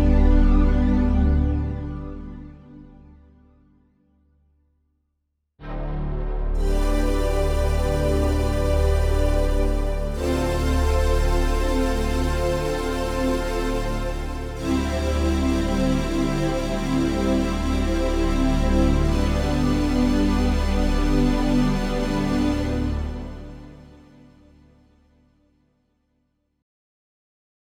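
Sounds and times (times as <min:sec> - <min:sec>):
synth pads on a Yamaha Tyros3: 0:00.0 - 0:02.8, 0:05.6 - 0:24.3.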